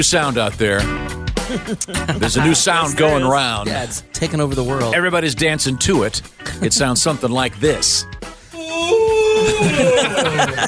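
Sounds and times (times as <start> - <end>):
speech: 0.0 - 10.6
laughter: 1.4 - 3.0, 9.4 - 10.6
person yawning: 8.5 - 9.9.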